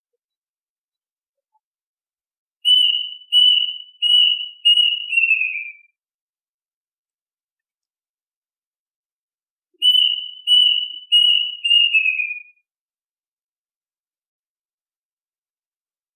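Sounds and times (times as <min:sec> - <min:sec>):
duck whistled calls: 0:02.7 - 0:05.9, 0:09.8 - 0:12.5.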